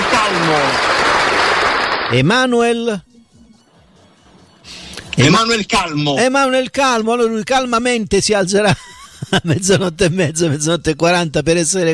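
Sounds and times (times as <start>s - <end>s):
applause: 0.0s - 2.3s
speech: 2.1s - 3.1s, 5.2s - 11.9s
laughter: 8.6s - 10.8s.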